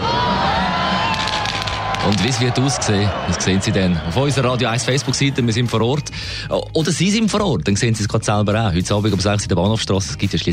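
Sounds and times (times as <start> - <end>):
children yelling: 0.0 - 3.5
large crowd cheering at a Christmas lights switch-on: 0.0 - 6.1
speech: 2.1 - 10.5.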